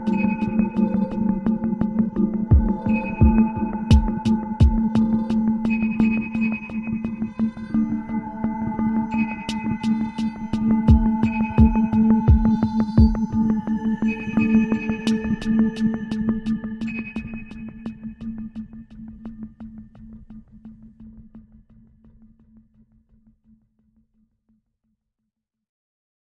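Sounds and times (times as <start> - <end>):
ambient hush music: 0.0 - 20.4.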